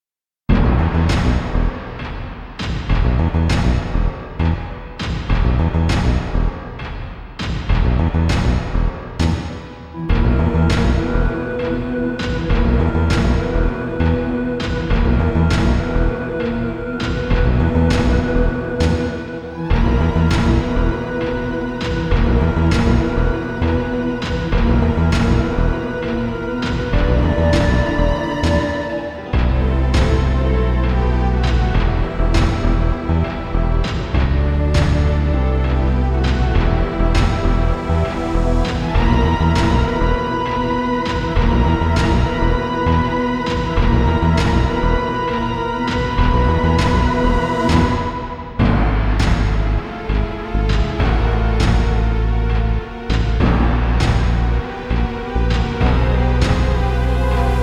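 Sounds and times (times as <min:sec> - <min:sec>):
metal music: 0:00.5 - 0:57.6.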